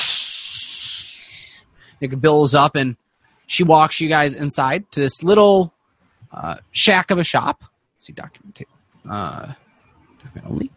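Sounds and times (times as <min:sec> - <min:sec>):
glowing hot metal quenched in a bucket of water, hissing: 0:00.0 - 0:01.3
speech: 0:02.0 - 0:09.6, 0:10.2 - 0:10.7.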